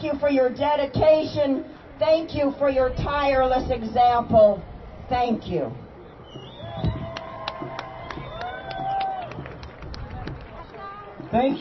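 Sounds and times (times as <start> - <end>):
speech: 0.0 - 6.4, 11.3 - 11.5
audience applause: 6.6 - 11.5.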